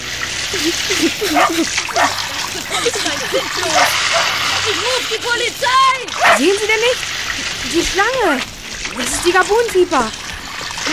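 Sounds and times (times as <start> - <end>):
water spraying from a garden hose: 0.0 - 10.9
laughter: 0.5 - 5.0
speech: 0.6 - 10.2.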